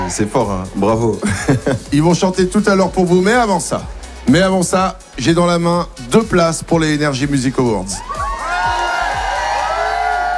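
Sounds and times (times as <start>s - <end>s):
radio studio audience shouting and whooping to win concert tickets: 0.0s - 0.7s, 7.8s - 10.3s
laughter: 0.0s - 2.5s
speech: 0.1s - 8.2s.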